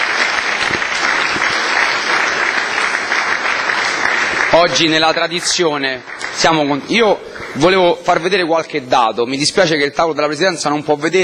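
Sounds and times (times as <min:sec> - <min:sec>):
audience applause for the former mayor of Cerveteri: 0:00.0 - 0:08.5
speech: 0:04.6 - 0:11.2.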